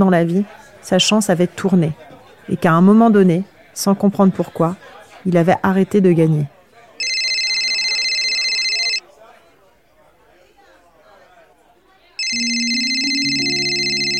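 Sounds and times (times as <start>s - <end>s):
speech: 0.0s - 6.6s
murmur of voices: 0.0s - 14.1s
mobile phone ringing: 7.0s - 9.0s, 12.2s - 14.1s
rising melodic tone: 12.3s - 14.1s.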